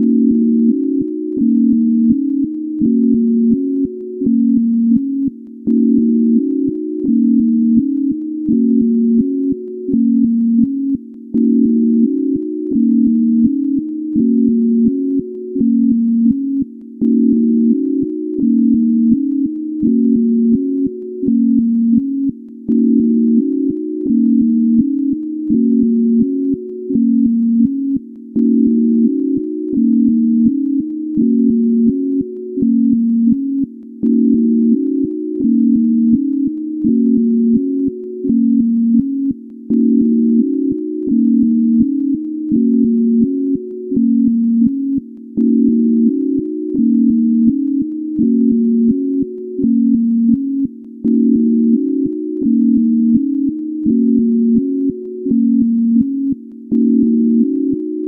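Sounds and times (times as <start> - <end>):
sine wave tone: 0.0 - 58.0.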